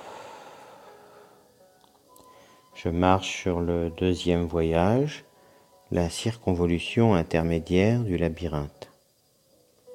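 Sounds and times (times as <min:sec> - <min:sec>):
deep breath in and slow exhale: 0:00.0 - 0:01.4
speech: 0:02.8 - 0:05.3, 0:05.9 - 0:08.8.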